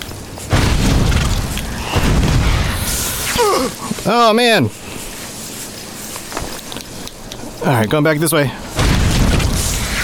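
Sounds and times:
burst of fire from a flame weapon in a video game: 0.5 - 3.9, 8.8 - 10.0
speech: 3.6 - 4.8, 7.6 - 8.6.

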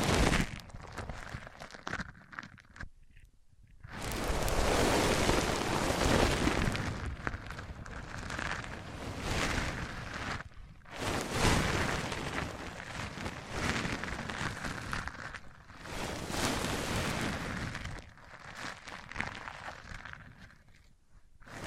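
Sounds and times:
microphone rubbed across a surface: 0.0 - 2.2, 3.8 - 18.2.

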